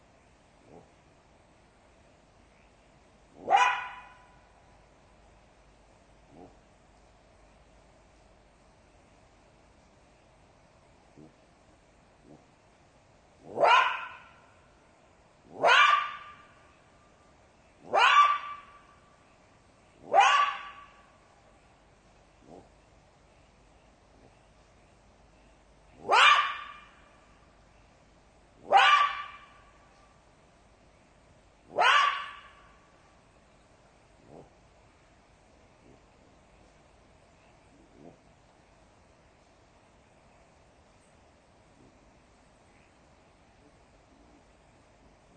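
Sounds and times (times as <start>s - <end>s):
jackal yelping: 3.4s - 4.4s, 13.4s - 14.5s, 15.5s - 16.6s, 17.8s - 18.9s, 20.0s - 21.1s, 26.0s - 27.1s, 28.6s - 29.7s, 31.7s - 32.7s.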